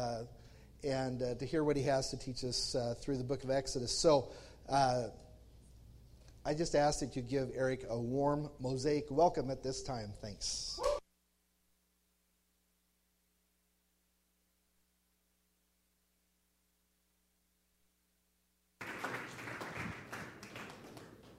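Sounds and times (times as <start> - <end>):
speech: 0.0 - 5.2, 6.4 - 10.8
audience clapping: 18.8 - 21.3.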